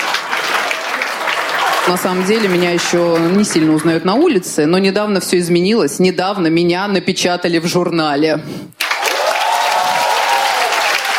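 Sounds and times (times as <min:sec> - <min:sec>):
stand-up comedy show audience applause: 0:00.0 - 0:03.8, 0:08.8 - 0:11.1
speech: 0:01.9 - 0:08.8.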